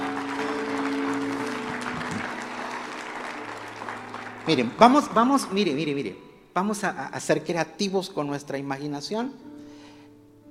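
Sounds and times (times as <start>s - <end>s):
audience applauding: 0.0s - 6.0s
speech: 4.5s - 9.5s.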